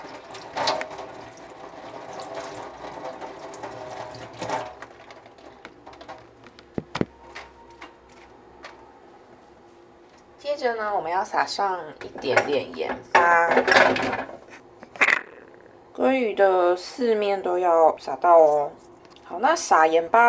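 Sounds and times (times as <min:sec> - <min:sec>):
tap water running over a salmon fillet being rinsed: 0:00.0 - 0:06.4
speech: 0:10.6 - 0:14.3, 0:16.0 - 0:18.8, 0:19.4 - 0:20.2.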